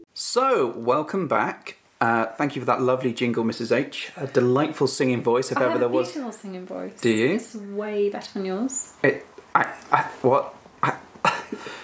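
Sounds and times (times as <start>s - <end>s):
speech: 0.4s - 11.7s
person coughing and spluttering: 10.8s - 11.6s.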